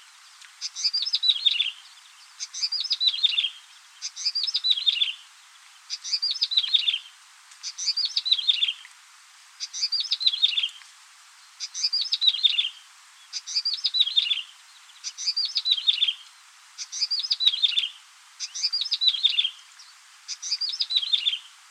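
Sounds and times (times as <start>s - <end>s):
yellow-bellied prinia singing: 0.6s - 5.2s, 5.9s - 7.0s, 9.6s - 10.7s, 11.6s - 21.5s.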